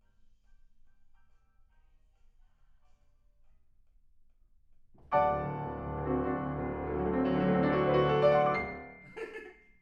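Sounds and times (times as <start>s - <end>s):
piano: 5.0s - 9.8s.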